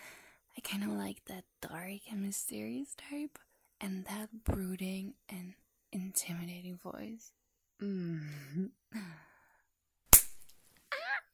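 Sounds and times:
speech: 0.6 - 9.3
slap on the buttocks: 10.1 - 10.5.

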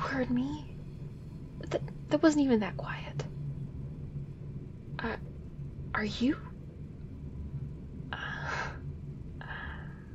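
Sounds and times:
low steady rumble: 0.0 - 10.1
speech: 0.2 - 0.8, 1.6 - 3.3, 5.0 - 5.3, 6.0 - 6.5
breathing: 9.4 - 10.1.

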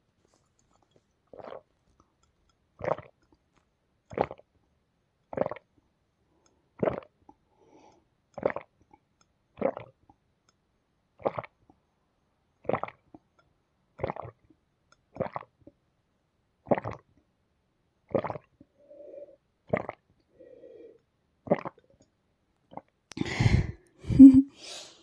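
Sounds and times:
person gulping water: 0.7 - 2.1, 2.8 - 3.4, 4.1 - 4.5, 5.3 - 5.8, 6.8 - 7.4, 8.4 - 10.2, 11.2 - 11.8, 12.6 - 13.2, 14.0 - 15.8, 16.6 - 17.2, 18.1 - 20.3, 20.9 - 24.4.

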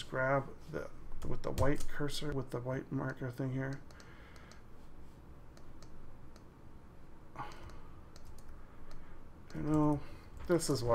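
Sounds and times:
low hiss: 0.0 - 10.9
speech: 0.1 - 4.0, 9.5 - 10.9
computer mouse clicking while editing in software: 3.1 - 4.7, 5.5 - 6.5, 7.4 - 10.6.

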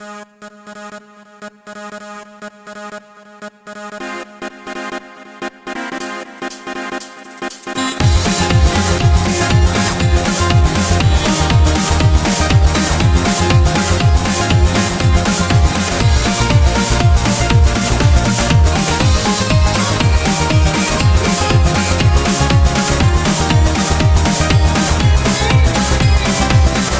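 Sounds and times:
chiptune train music: 7.8 - 26.9.

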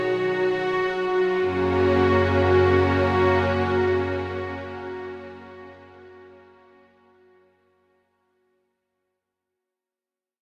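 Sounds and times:
string instruments mix: 0.0 - 7.4.

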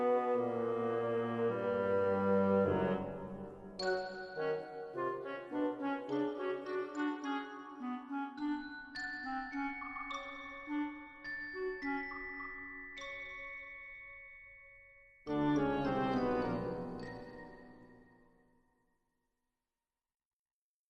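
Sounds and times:
orchestral score: 0.0 - 12.1, 15.3 - 17.7.

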